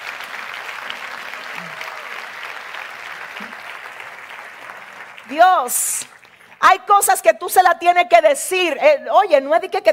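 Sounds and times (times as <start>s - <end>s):
audience applause: 0.0s - 6.6s
speech: 5.3s - 9.9s.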